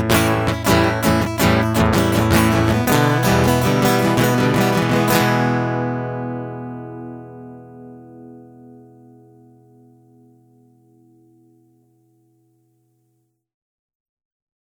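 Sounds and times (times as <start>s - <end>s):
instrumental music: 0.0s - 11.4s.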